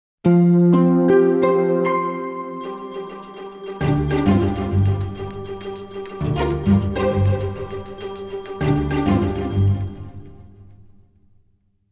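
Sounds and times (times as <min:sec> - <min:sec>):
ringtone: 0:01.2 - 0:10.5.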